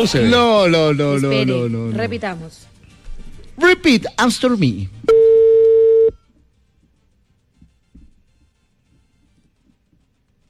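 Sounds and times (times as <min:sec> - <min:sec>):
speech: 0:00.0 - 0:02.8, 0:03.6 - 0:05.3
telephone line tone as a call is hung up: 0:05.1 - 0:06.2.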